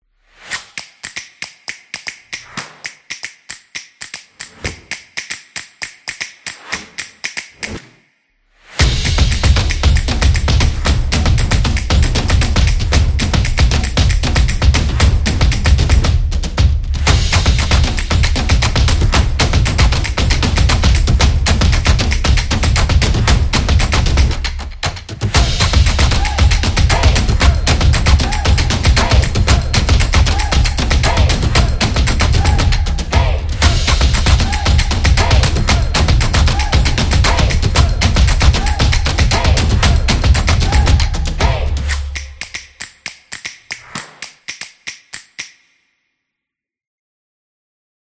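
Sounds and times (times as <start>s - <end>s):
drum: 8.8s - 42.8s.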